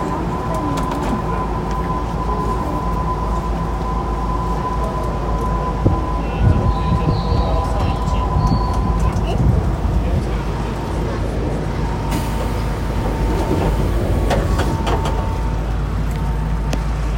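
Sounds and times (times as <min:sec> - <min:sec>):
train sounds on the Keikyu Main Line: 0:00.0 - 0:17.1.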